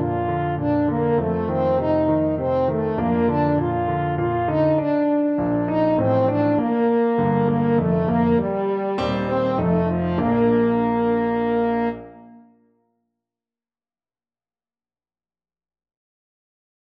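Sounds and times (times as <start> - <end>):
french horn playing waltzes: 0.0 - 12.5.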